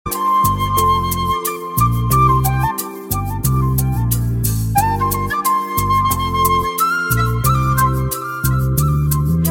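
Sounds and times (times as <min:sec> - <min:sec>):
flute: 0:00.1 - 0:09.4.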